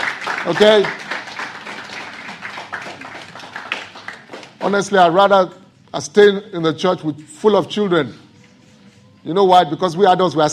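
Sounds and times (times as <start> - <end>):
people clapping: 0.0 - 5.1
speech: 0.4 - 1.0, 4.7 - 8.2, 9.2 - 10.5.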